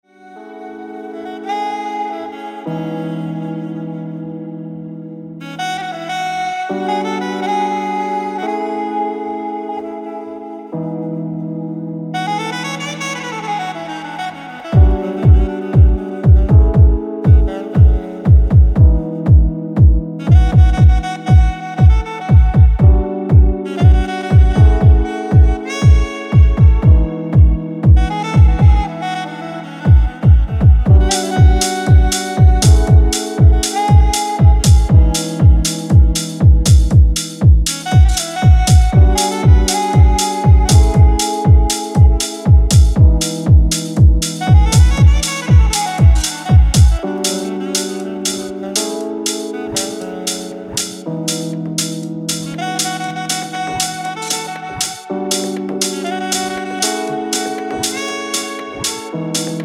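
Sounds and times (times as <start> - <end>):
saxophone: 0.0 - 59.6.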